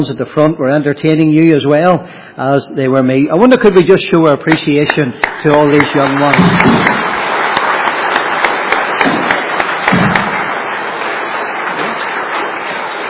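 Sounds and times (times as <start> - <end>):
speech: 0.0 - 7.0
audience applause: 3.5 - 13.0.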